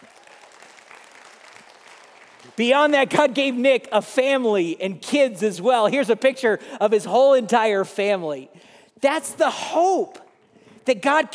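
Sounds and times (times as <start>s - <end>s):
audience clapping: 0.0s - 3.0s
speech: 2.4s - 10.2s, 10.9s - 11.3s.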